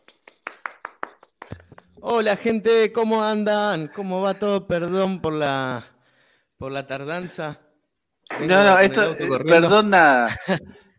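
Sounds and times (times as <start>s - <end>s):
hand clapping: 0.0s - 2.1s
speech: 2.0s - 5.9s, 6.6s - 7.6s, 8.4s - 10.8s
laughter: 10.2s - 10.8s.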